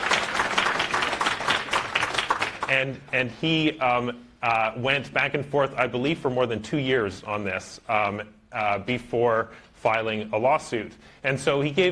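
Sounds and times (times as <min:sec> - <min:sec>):
crowd clapping: 0:00.0 - 0:02.9
speech: 0:02.7 - 0:11.8.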